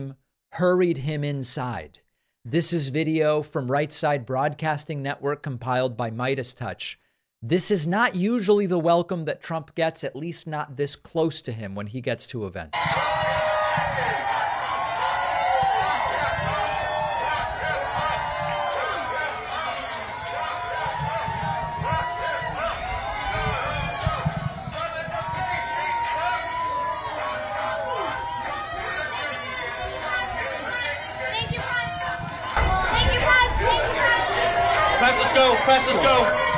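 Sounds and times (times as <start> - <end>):
speech: 0.0 - 13.2
hostile crowd chanting and shouting at Donald Trump: 12.8 - 36.5
whoops and cheers: 12.8 - 36.5.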